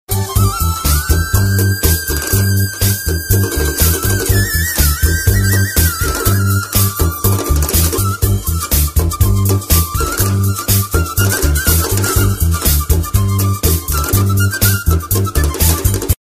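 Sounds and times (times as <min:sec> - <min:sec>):
flute ringtone: 0:00.1 - 0:16.2.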